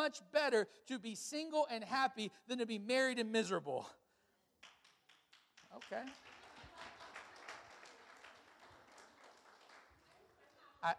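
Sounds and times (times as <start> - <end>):
speech: 0.0 - 4.0, 5.7 - 6.9
audience clapping: 4.6 - 10.9.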